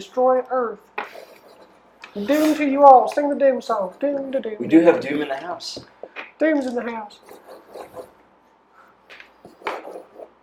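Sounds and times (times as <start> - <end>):
speech: 0.0 - 1.2, 2.1 - 8.1
pencil drawing on paper: 1.1 - 2.5, 7.2 - 8.2, 9.4 - 10.4.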